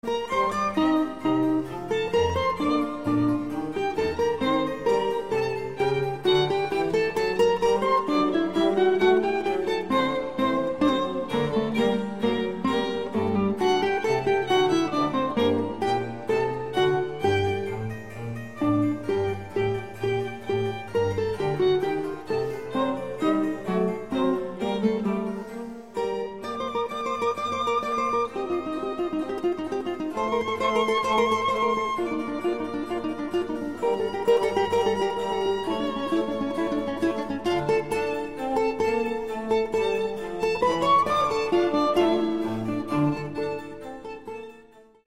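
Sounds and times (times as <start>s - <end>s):
trio sonata in G minor andante movement: 0.0s - 45.0s.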